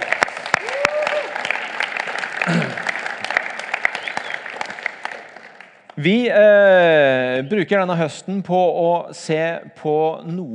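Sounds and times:
audience applause: 0.0s - 6.0s
voices and brief whoop: 0.5s - 1.4s
speech: 6.0s - 10.5s.

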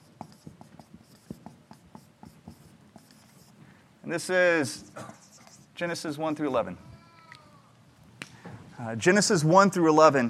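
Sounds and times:
pen scratching while writing a heading by hand: 0.0s - 3.6s, 5.1s - 5.7s
speech: 4.1s - 5.1s, 5.8s - 6.9s, 8.8s - 10.2s.

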